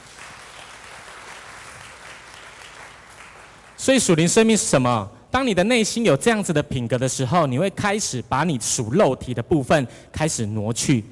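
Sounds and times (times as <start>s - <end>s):
warm applause: 0.0s - 3.8s
speech: 3.8s - 11.1s.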